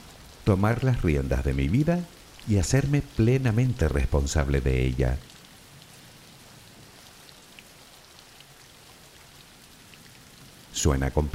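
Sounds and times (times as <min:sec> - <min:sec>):
rain falling: 0:00.0 - 0:11.3
speech: 0:00.5 - 0:05.3, 0:10.8 - 0:11.3.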